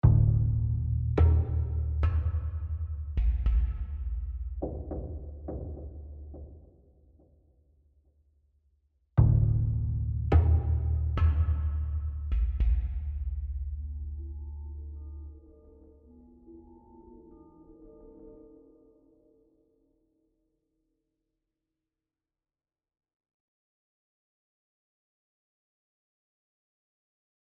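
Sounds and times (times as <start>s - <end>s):
low tension music: 0.0s - 6.5s, 9.2s - 18.7s.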